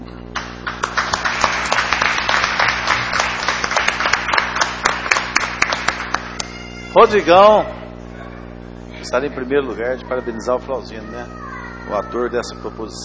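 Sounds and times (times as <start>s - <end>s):
audience clapping: 0.3s - 7.2s
speech: 7.0s - 7.8s, 9.0s - 13.0s.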